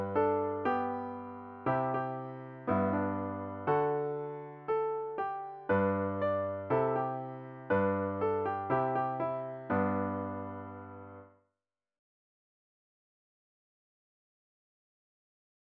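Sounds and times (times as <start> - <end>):
piano: 0.0 - 11.4.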